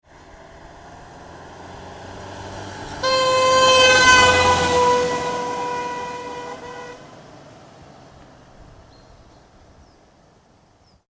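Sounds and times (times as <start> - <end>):
car passing fast: 0.1 - 9.6
car horn blasting: 2.9 - 7.2.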